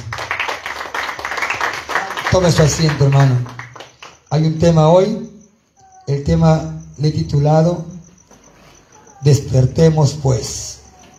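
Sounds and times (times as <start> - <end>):
audience clapping: 0.0 - 4.3
speech: 2.3 - 3.6, 4.3 - 5.3, 6.1 - 7.9, 9.2 - 10.8.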